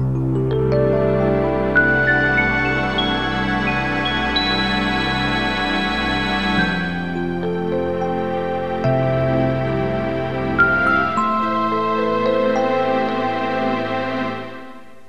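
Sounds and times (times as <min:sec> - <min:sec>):
strings: 0:00.1 - 0:15.0.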